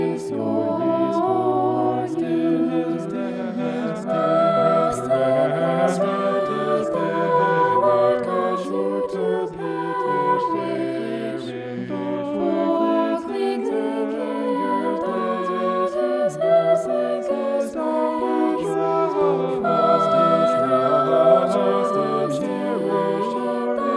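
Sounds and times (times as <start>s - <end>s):
polyphonic vocals in E minor: 0.0s - 23.9s.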